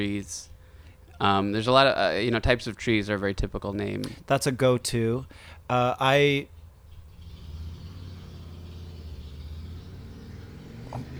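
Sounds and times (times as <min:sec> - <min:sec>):
speech: 0:00.0 - 0:00.5, 0:01.2 - 0:06.6
motorcycle passing on the street: 0:06.6 - 0:11.1.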